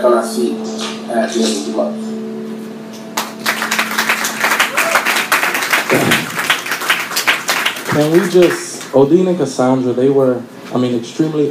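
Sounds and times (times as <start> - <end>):
speech: 0.0 - 2.2, 8.0 - 11.5
low hum: 0.0 - 8.2
audience applause: 3.2 - 9.0.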